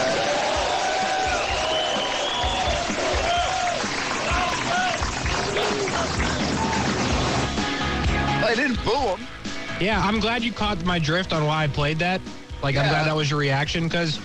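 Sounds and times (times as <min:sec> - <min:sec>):
whoops and cheers: 0:00.0 - 0:07.4
crowd ovation for golfer Phil Mickelson: 0:00.0 - 0:08.0
speech: 0:08.8 - 0:14.2.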